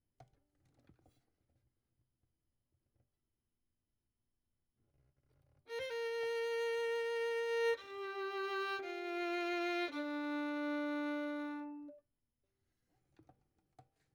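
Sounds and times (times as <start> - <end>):
violin: 5.7 - 12.0.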